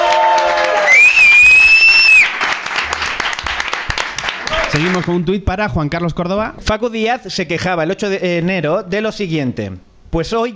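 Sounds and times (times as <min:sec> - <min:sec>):
audience applause: 0:00.0 - 0:05.2
speech: 0:04.8 - 0:10.5.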